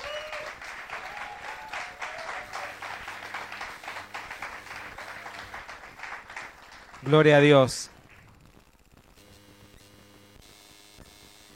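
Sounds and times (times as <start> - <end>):
audience applause: 0.0 - 8.4
speech: 7.0 - 8.0.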